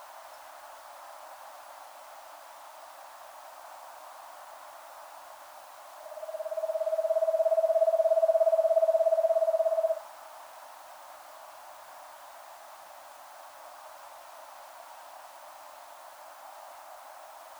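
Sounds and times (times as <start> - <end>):
Eastern screech owl Megascops asio trilling: 6.1 - 10.0.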